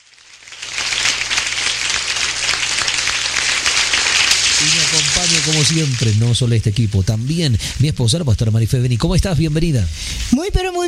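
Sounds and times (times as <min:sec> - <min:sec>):
audience applause: 0:00.4 - 0:06.2
speech: 0:04.6 - 0:10.8.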